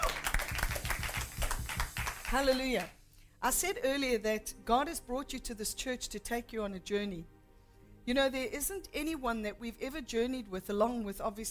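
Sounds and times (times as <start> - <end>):
audience clapping: 0.0 - 3.0
speech: 2.3 - 7.4, 8.0 - 11.5.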